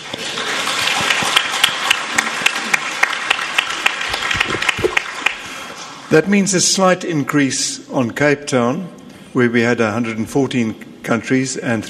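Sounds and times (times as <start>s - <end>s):
audience applause: 0.0s - 6.2s
speech: 6.1s - 11.8s.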